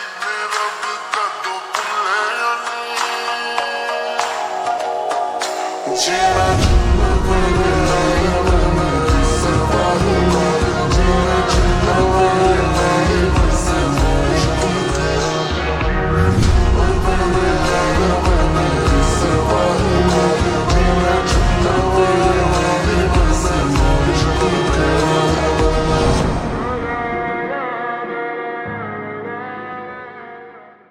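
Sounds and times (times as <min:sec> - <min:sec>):
slowed reverb music: 0:00.2 - 0:30.6.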